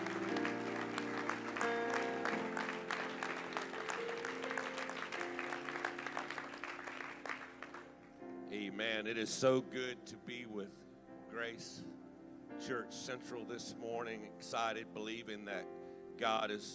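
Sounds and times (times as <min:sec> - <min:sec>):
audience clapping: 0:00.0 - 0:08.1
speech: 0:08.8 - 0:12.0, 0:12.6 - 0:16.7.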